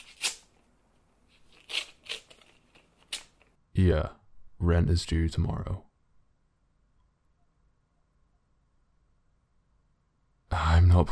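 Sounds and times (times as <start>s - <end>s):
envelope being torn open on a table: 0.0s - 0.6s, 1.3s - 3.5s
speech: 3.8s - 5.9s.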